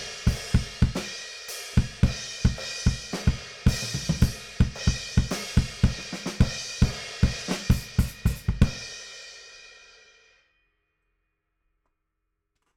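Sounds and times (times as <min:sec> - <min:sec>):
bass drum: 0:00.0 - 0:01.1, 0:01.8 - 0:08.9.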